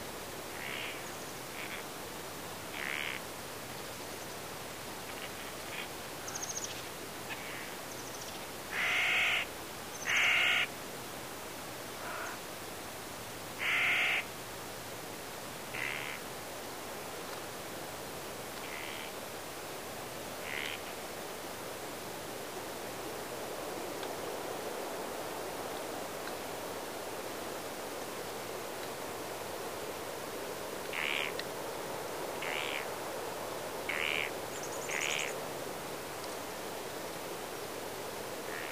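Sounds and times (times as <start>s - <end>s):
autumn wind: 0.0s - 38.6s
birds: 0.6s - 1.9s, 2.7s - 10.7s, 30.9s - 31.4s, 32.4s - 32.9s, 33.9s - 35.4s.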